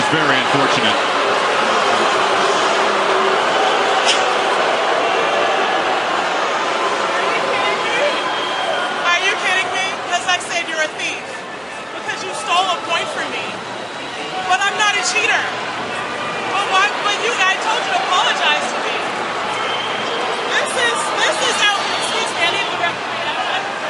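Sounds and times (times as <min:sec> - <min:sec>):
tennis stadium crowd noise: 0:00.0 - 0:23.8
speech: 0:00.1 - 0:01.4, 0:15.0 - 0:15.9, 0:16.6 - 0:19.0.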